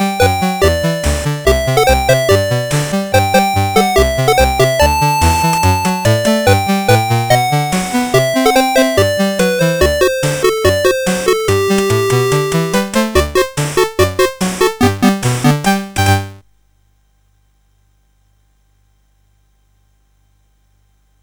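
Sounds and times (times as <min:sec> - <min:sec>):
fireworks celebration chiptune music on CSG8580R5 chip: 0:00.0 - 0:16.4.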